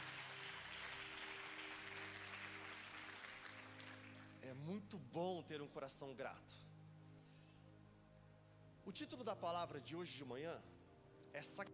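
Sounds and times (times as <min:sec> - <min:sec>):
audience applause: 0:00.0 - 0:04.4
speech: 0:04.4 - 0:06.6, 0:08.9 - 0:10.7, 0:11.3 - 0:11.7.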